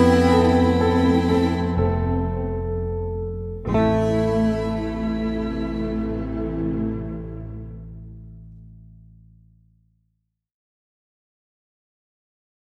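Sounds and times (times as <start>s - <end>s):
guitar version of a song: 0.0s - 8.5s.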